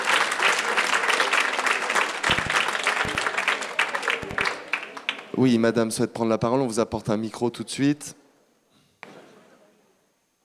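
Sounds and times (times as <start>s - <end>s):
audience applause: 0.0s - 5.4s
speech: 5.4s - 8.2s.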